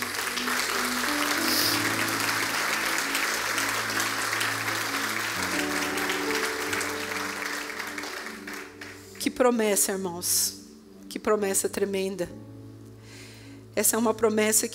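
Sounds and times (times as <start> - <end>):
audience applauding: 0.0 - 9.2
speech: 9.4 - 12.5, 13.8 - 14.7.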